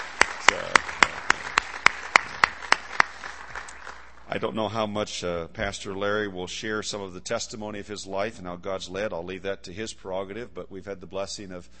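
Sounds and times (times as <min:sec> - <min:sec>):
audience applause: 0:00.0 - 0:04.3
steady soft noise: 0:00.0 - 0:11.7
speech: 0:04.3 - 0:11.7.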